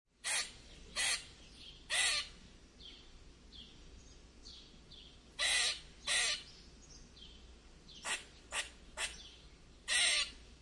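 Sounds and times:
squirrel squeaking: 0:00.2 - 0:01.3, 0:01.9 - 0:02.4, 0:05.4 - 0:06.5, 0:08.0 - 0:10.4.

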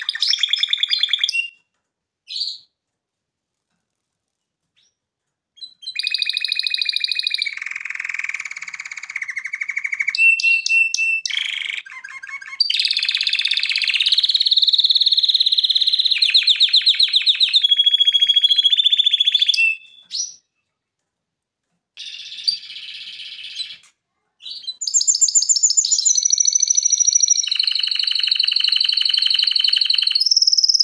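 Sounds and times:
canary singing: 0:00.0 - 0:01.6, 0:05.6 - 0:20.6, 0:22.0 - 0:30.8.

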